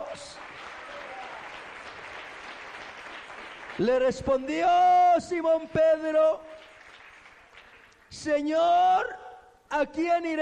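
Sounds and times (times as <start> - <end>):
audience applauding: 0.0 - 4.8, 6.3 - 8.2
speech: 3.8 - 6.5, 8.2 - 10.4.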